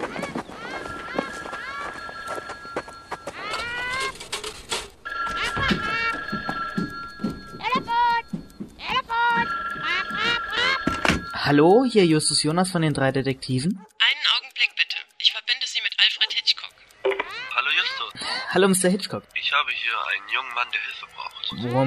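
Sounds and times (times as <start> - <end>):
telephone ringing at a workbench: 0.1 - 12.7, 14.1 - 21.8
clattering and knocking: 3.3 - 11.3
speech: 11.5 - 13.9, 18.5 - 19.6, 21.6 - 21.8.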